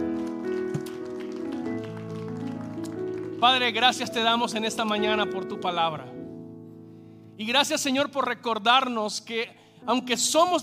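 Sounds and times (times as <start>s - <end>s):
audience applauding loudly: 0.0s - 4.4s
keyboard or organ chords: 0.0s - 7.9s
speech: 3.4s - 6.2s, 7.4s - 10.6s.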